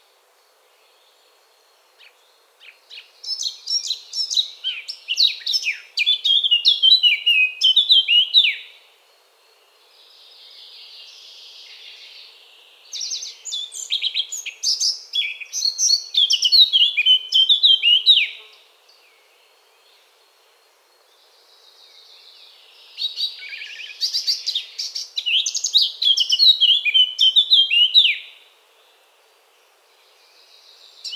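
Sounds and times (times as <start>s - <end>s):
faint background hiss: 0.0s - 31.1s
Eurasian blackcap song: 2.0s - 8.8s, 12.9s - 19.0s, 22.2s - 28.4s.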